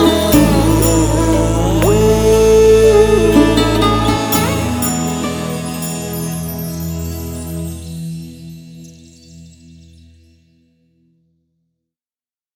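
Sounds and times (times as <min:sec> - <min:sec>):
background music: 0:00.0 - 0:09.3.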